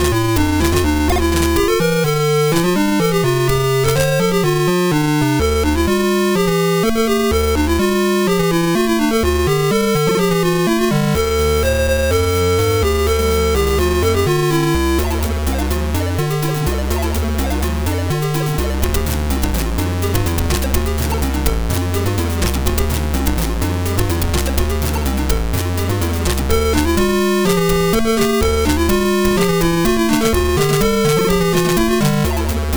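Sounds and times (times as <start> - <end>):
YM2149 sound chip electro music: 0.0 - 32.7.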